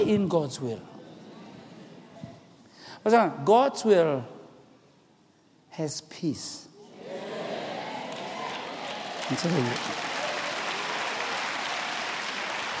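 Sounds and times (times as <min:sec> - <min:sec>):
speech: 0:00.0 - 0:01.0, 0:03.0 - 0:04.4, 0:05.8 - 0:06.6, 0:09.3 - 0:10.1
audience clapping: 0:08.0 - 0:12.7.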